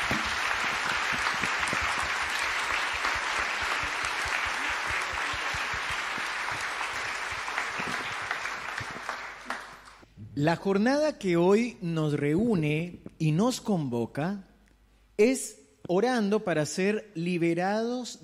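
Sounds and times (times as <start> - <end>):
audience applauding: 0.0 - 10.0
speech: 10.4 - 14.5, 15.2 - 18.2.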